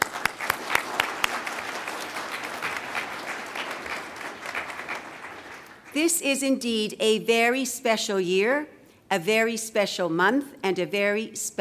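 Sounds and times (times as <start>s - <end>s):
audience applause: 0.0s - 5.9s
speech: 6.0s - 11.5s.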